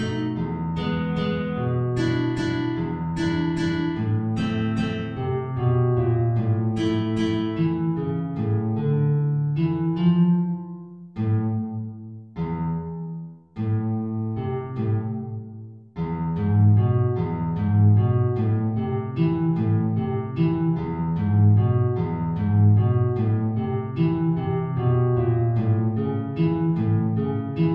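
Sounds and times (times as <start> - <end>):
guitar playing: 0.0 - 27.7.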